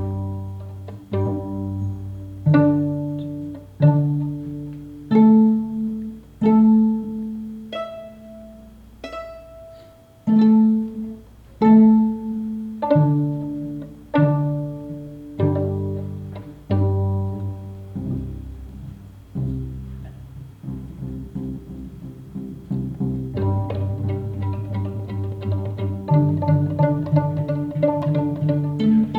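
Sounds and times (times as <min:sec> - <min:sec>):
open strings: 0:00.0 - 0:29.1.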